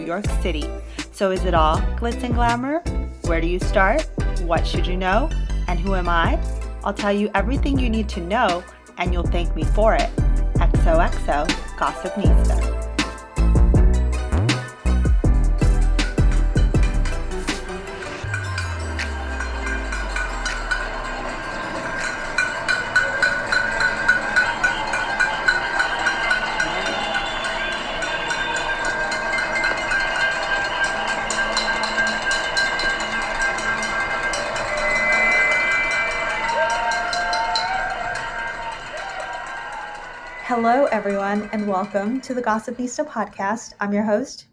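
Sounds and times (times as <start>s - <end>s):
speech: 0.0s - 12.6s, 41.0s - 44.5s
crowds across New York City roaring and cheering for healthcare workers: 13.0s - 42.2s.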